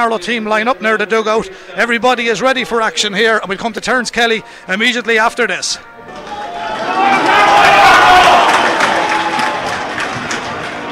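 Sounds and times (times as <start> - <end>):
speech: 0.0 - 6.4
Dr. Cullen Park crowd roar: 6.1 - 10.9.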